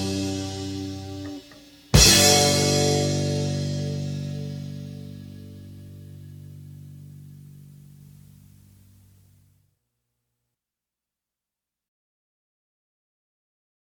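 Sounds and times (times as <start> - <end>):
fanfare: 0.0 - 5.4.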